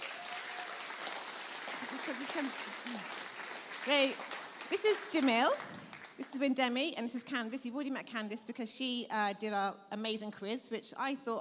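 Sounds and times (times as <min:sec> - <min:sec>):
audience applause: 0:00.0 - 0:06.2
speech: 0:02.1 - 0:11.3.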